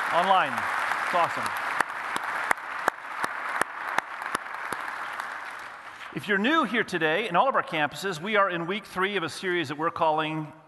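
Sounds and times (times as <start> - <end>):
audience applause welcoming all of the campuses: 0.0 - 6.1
speech: 0.1 - 1.6, 6.1 - 10.6.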